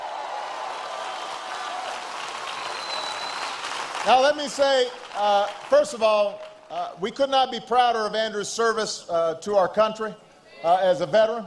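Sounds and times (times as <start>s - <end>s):
round of applause: 0.0s - 6.7s
speech: 4.0s - 11.4s.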